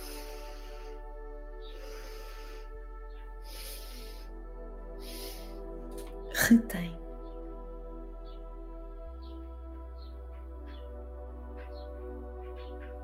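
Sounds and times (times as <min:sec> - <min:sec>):
deep inhale during a guided breathing exercise: 0:00.0 - 0:06.3
low hum: 0:00.0 - 0:13.0
speech: 0:06.5 - 0:07.0.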